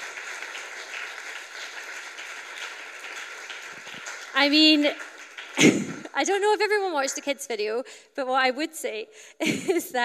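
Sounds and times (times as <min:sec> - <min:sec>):
round of applause: 0:00.0 - 0:06.2
speech: 0:04.4 - 0:05.0, 0:05.6 - 0:10.0.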